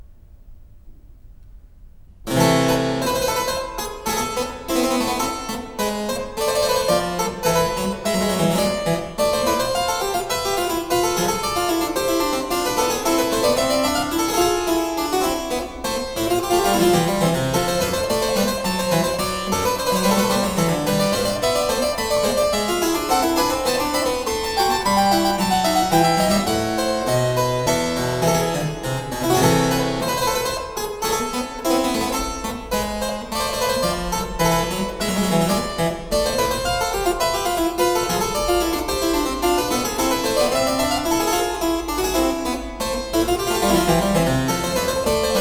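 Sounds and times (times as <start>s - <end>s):
harpsichord: 2.3s - 45.4s.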